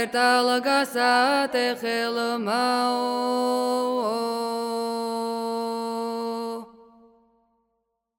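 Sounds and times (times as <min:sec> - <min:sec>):
Adjarian naduri work song second voice part: 0:00.0 - 0:07.0.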